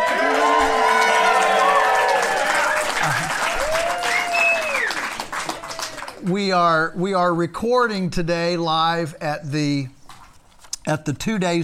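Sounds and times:
live audience cheering and whooping at a summit recording on Polyface Farm: 0:00.0 - 0:06.2
speech: 0:06.3 - 0:10.0, 0:10.8 - 0:11.6.

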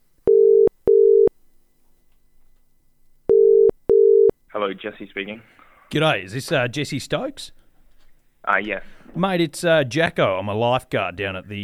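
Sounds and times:
telephone ringing tone while placing a call: 0:00.2 - 0:01.3, 0:03.3 - 0:04.3
speech: 0:04.6 - 0:07.6, 0:08.4 - 0:11.6.

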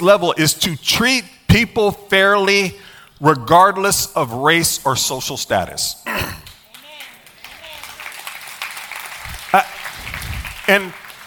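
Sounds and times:
speech: 0:00.0 - 0:06.4, 0:10.7 - 0:11.0
audience applause: 0:06.7 - 0:11.2.

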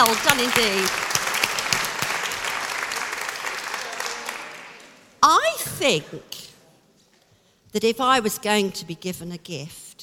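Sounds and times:
speech: 0:00.0 - 0:01.1, 0:05.7 - 0:06.5, 0:07.7 - 0:09.8
several people applauding: 0:00.0 - 0:05.1.

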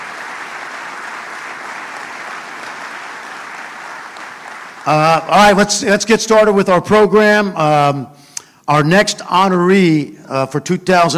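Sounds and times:
round of applause: 0:00.0 - 0:05.8
speech: 0:04.8 - 0:11.1.

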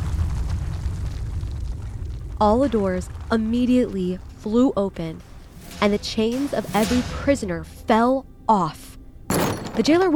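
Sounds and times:
earthquake rumble shaking a prison: 0:00.0 - 0:07.8
speech: 0:02.4 - 0:08.9, 0:09.8 - 0:10.1.

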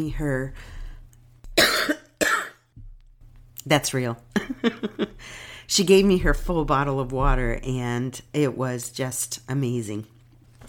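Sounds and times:
speech: 0:00.0 - 0:00.8, 0:03.6 - 0:10.1
cough: 0:01.6 - 0:02.6.

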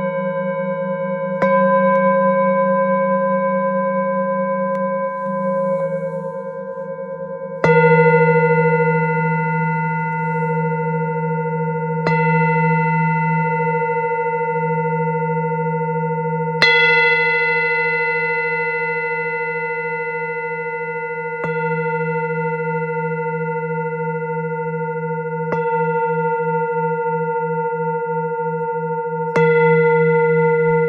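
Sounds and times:
Tibetan singing bowls struck and ringing: 0:00.0 - 0:30.8.

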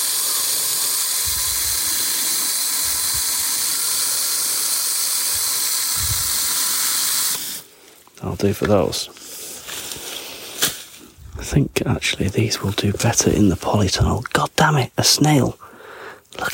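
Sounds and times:
water squirting from a garden watering hose: 0:00.0 - 0:07.7
speech: 0:08.2 - 0:09.2, 0:11.5 - 0:15.7.

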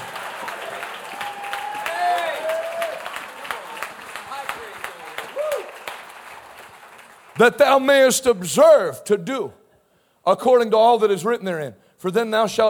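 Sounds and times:
audience clapping hands: 0:00.0 - 0:08.1
speech: 0:07.4 - 0:09.6, 0:10.3 - 0:12.6.

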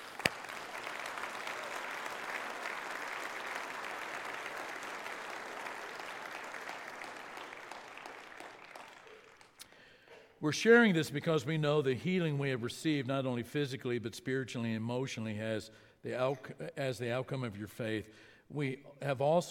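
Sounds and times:
audience applause: 0:00.0 - 0:09.6
speech: 0:10.4 - 0:19.4.

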